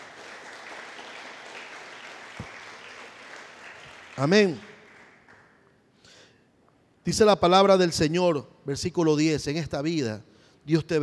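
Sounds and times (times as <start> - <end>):
audience applause: 0.0 - 5.6
speech: 4.2 - 4.7, 7.1 - 11.0.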